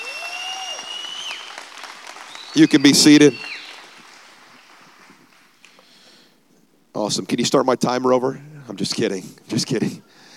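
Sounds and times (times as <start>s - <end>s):
audience applause: 0.0s - 5.6s
speech: 2.6s - 3.5s, 7.1s - 10.2s.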